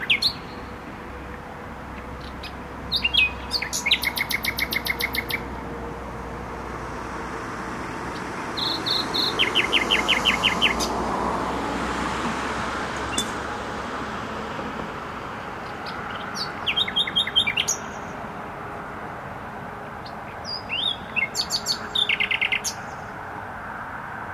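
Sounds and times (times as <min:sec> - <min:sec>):
nightingale singing: 0:00.0 - 0:00.7, 0:02.0 - 0:05.5, 0:08.6 - 0:10.9, 0:13.1 - 0:13.4, 0:15.8 - 0:18.1, 0:20.0 - 0:22.9
heavy steady traffic noise: 0:00.0 - 0:24.3.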